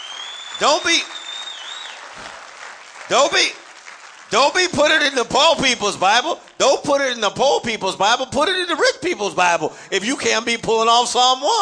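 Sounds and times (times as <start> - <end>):
audience clapping: 0.0 - 7.1
speech: 0.6 - 1.2, 3.1 - 3.6, 4.3 - 11.5.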